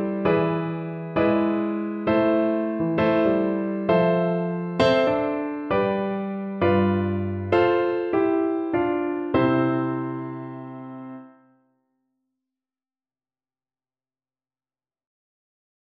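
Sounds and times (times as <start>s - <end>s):
song: 0.0s - 11.3s.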